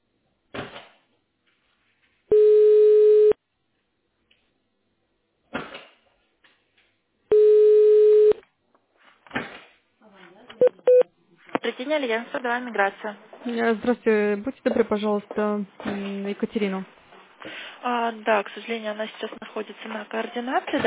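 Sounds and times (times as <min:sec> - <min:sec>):
telephone tones while a call is transferred to a personal manager: 0:02.3 - 0:03.4, 0:07.3 - 0:08.4, 0:10.6 - 0:11.1
speech: 0:11.8 - 0:17.0, 0:17.8 - 0:20.8.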